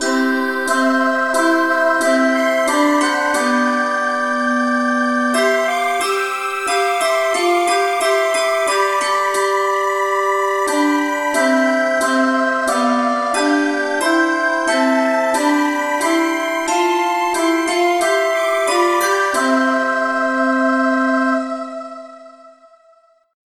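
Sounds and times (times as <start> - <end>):
choir singing in C: 0.0 - 23.1.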